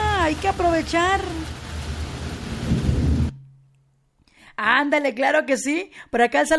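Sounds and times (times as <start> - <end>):
heavy rain: 0.0 - 3.4
thunder: 0.0 - 3.4
speech: 0.3 - 1.5, 4.6 - 6.5.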